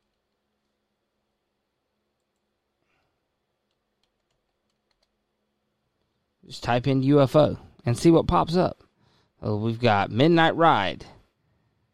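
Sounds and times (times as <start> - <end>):
low steady hiss: 0.0 - 11.9
typing on a computer keyboard: 2.2 - 2.5, 3.6 - 5.2
speech: 6.5 - 8.8, 9.4 - 11.2.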